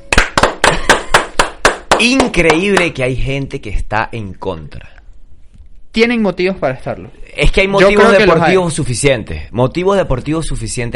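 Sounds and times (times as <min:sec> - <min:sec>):
clapping: 0:00.1 - 0:02.9
speech: 0:02.0 - 0:05.0, 0:06.0 - 0:10.9.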